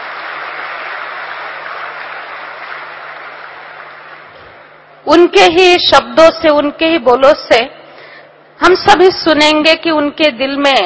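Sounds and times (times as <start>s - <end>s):
audience applause welcoming speaker: 0.0s - 4.6s
speech: 5.1s - 7.8s, 8.6s - 10.8s.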